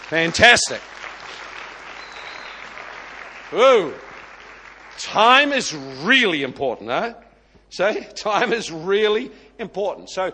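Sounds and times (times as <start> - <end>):
audience clapping: 0.0 - 6.1
speech: 0.1 - 1.0, 3.5 - 4.1, 5.0 - 10.3.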